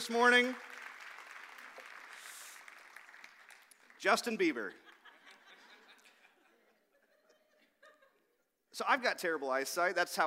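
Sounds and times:
speech: 0.0s - 0.7s, 4.0s - 4.8s, 8.8s - 10.2s
audience applause: 0.0s - 5.1s
laughter: 4.7s - 8.4s.

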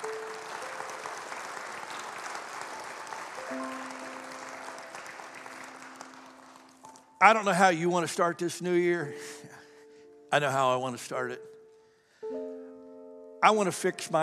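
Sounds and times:
crowd applauding: 0.0s - 7.6s
speech: 7.2s - 9.4s, 10.3s - 11.5s, 13.4s - 14.2s.

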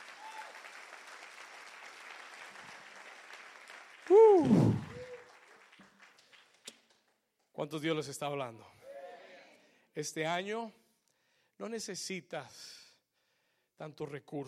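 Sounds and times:
loud applause: 0.0s - 6.6s
speech: 7.6s - 8.8s, 10.0s - 10.8s, 11.6s - 12.8s, 13.8s - 14.4s.

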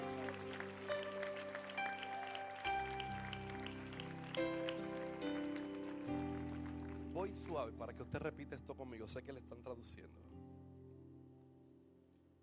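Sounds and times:
audience applauding loudly: 0.0s - 8.1s
sustained keyboard chords: 0.0s - 12.4s
speech: 7.4s - 10.4s.

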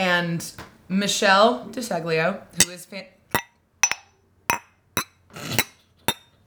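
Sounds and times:
speech: 0.0s - 3.2s
drinking glasses clinking together: 3.4s - 6.3s
glass grinding scrape: 3.4s - 6.3s.

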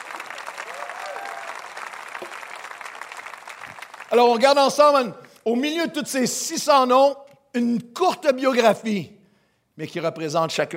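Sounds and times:
faint cheer or whoop: 0.0s - 3.1s
audience applause: 0.0s - 4.5s
speech: 4.1s - 9.2s, 9.8s - 10.7s.

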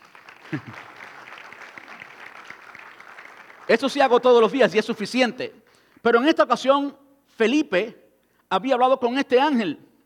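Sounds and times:
audience applause: 0.0s - 4.2s
laughter: 0.4s - 1.0s
speech: 0.5s - 1.0s, 3.7s - 9.9s.

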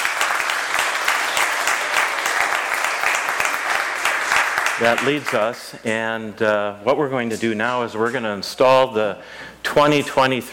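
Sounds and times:
church congregation applauding during a Sunday service: 0.0s - 5.6s
speech: 4.8s - 10.5s.

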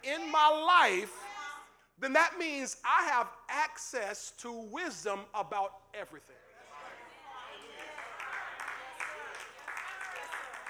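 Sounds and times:
speech: 0.0s - 1.2s, 2.0s - 6.4s
hesitant scattered audience clapping: 7.2s - 10.6s.

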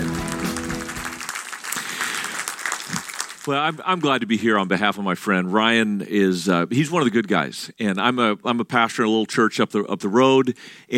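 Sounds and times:
church congregation applause welcoming a speaker: 0.0s - 4.2s
speech: 3.4s - 10.9s.

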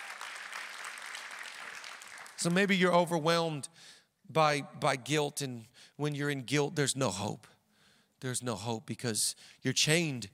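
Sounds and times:
audience clapping: 0.0s - 2.8s
speech: 2.4s - 7.5s, 8.2s - 10.3s.

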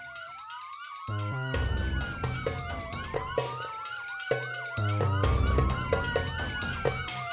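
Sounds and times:
police car siren chasing a stolen roadster: 0.0s - 7.3s
steady rhythmic pulse: 0.0s - 7.3s.

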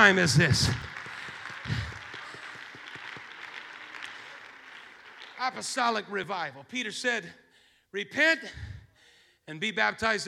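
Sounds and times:
speech: 0.0s - 0.9s, 5.4s - 8.7s, 9.5s - 10.2s
audience clapping hands: 0.0s - 6.6s.

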